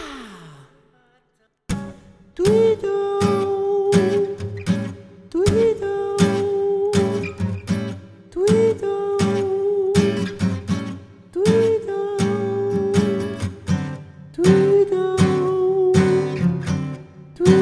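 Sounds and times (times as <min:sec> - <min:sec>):
blues rhythm: 0:01.7 - 0:17.5.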